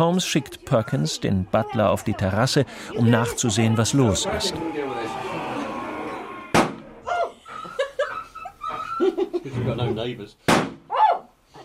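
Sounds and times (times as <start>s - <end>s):
speech: 0.0s - 5.4s, 9.6s - 10.8s
laughter: 2.9s - 10.2s
gunshots killing the hound: 6.5s - 6.9s.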